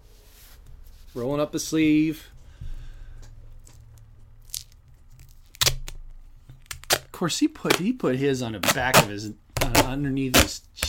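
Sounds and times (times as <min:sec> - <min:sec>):
speech: 0:01.2 - 0:02.4, 0:07.2 - 0:10.8
adhesive tape torn off a roll: 0:04.4 - 0:07.9, 0:08.6 - 0:10.8.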